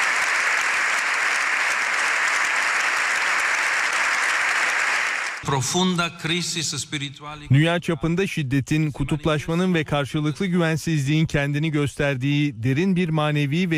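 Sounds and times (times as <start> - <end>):
standing ovation for Pope Leo XIV in the Spanish parliament chamber: 0.0 - 5.4
speech: 5.4 - 13.7.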